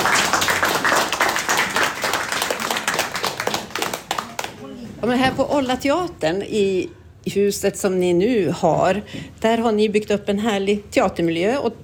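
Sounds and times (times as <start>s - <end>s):
audience applause for performers: 0.0s - 4.7s
speech: 5.0s - 11.8s.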